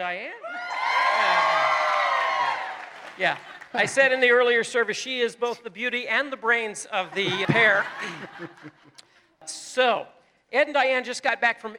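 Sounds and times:
speech: 0.0 - 0.8, 3.2 - 11.7
audience applause: 0.7 - 4.2
laughter: 3.2 - 4.4, 7.0 - 9.0.

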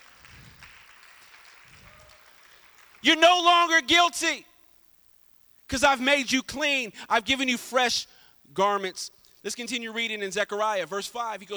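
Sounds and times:
audience clapping: 0.0 - 3.8
speech: 3.0 - 4.5, 5.7 - 11.5.

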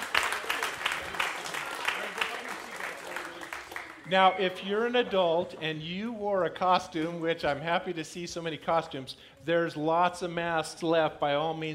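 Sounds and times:
crowd applauding: 0.0 - 4.9
speech: 4.1 - 11.7.

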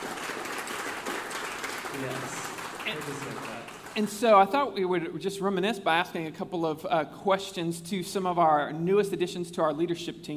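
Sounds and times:
audience applause: 0.0 - 4.1
speech: 2.0 - 10.3.

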